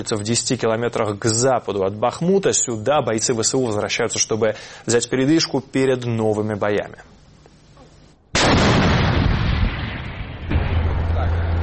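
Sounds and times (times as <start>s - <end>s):
speech: 0.0s - 7.1s
tank gun blast firing from covered position: 8.4s - 11.6s
low drone: 10.1s - 11.6s.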